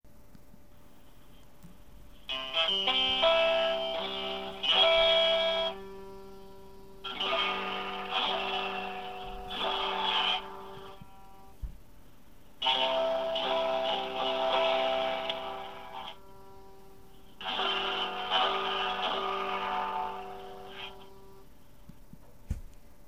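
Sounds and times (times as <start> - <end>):
chords played: 2.3 - 11.4, 12.6 - 21.3.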